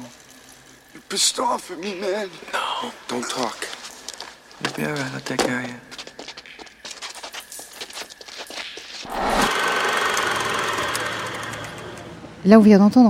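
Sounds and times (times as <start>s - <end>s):
speech: 1.1s - 3.8s, 4.7s - 5.9s, 12.4s - 13.0s
motorcycle engine: 9.0s - 12.4s.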